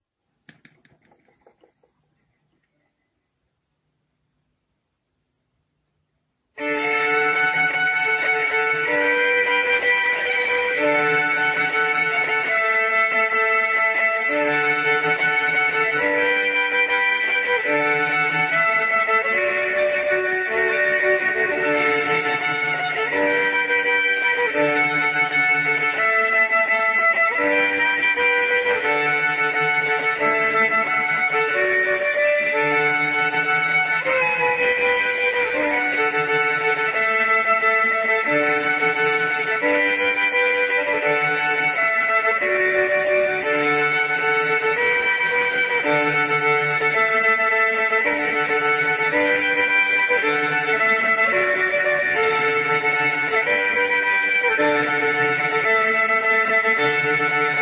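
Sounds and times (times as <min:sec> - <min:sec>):
fiddle dance tune: 0:06.6 - 0:57.6.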